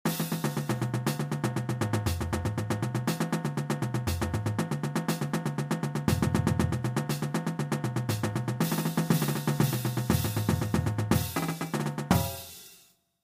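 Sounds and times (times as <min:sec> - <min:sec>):
drum flams: 0:00.1 - 0:12.8.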